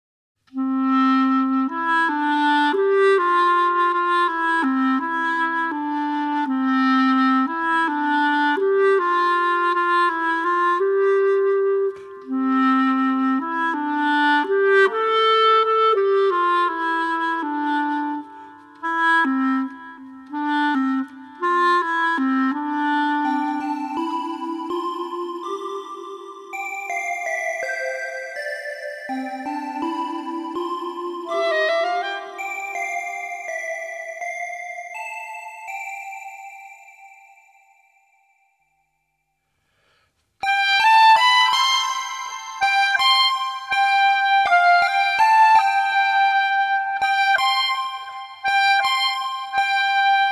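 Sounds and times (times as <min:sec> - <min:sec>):
clarinet: 0:00.5 - 0:37.6, 0:39.7 - 0:50.2.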